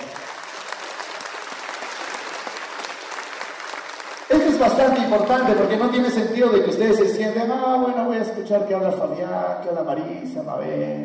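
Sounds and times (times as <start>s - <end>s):
audience applause: 0.0s - 5.9s
speech: 4.6s - 11.0s.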